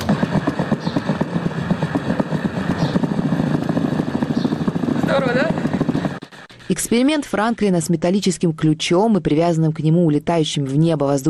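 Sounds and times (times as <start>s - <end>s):
squirrel heartbeat: 0.0s - 8.1s
speech: 5.2s - 5.6s, 6.8s - 11.2s.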